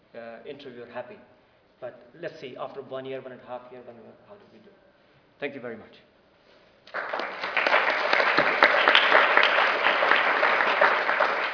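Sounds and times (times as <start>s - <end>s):
speech: 0.2s - 6.1s, 6.9s - 7.3s
audience clapping: 6.9s - 11.5s.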